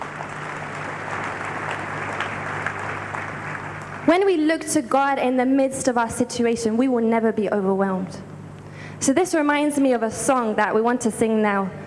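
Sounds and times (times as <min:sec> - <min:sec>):
audience applauding: 0:00.0 - 0:04.1
speech: 0:04.1 - 0:08.3, 0:09.0 - 0:11.8.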